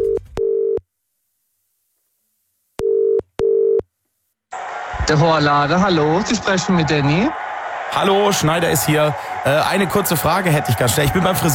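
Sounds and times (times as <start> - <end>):
telephone ringing tone while placing a call: 0.0 - 0.8, 2.8 - 3.8
speech: 5.1 - 11.5.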